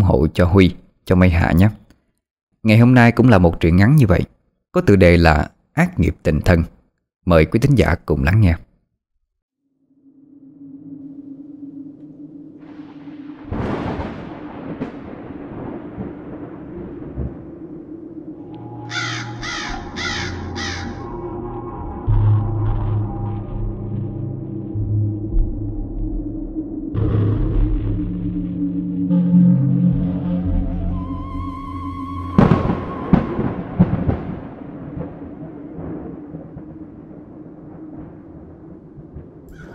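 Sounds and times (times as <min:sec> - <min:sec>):
speech: 0:00.0 - 0:01.8, 0:02.6 - 0:08.6
thunder rumbling over an empty cemetery: 0:10.0 - 0:39.7
loud thunder cracks: 0:12.6 - 0:21.2, 0:21.9 - 0:39.7
crows cawing: 0:18.8 - 0:21.2, 0:39.5 - 0:39.7.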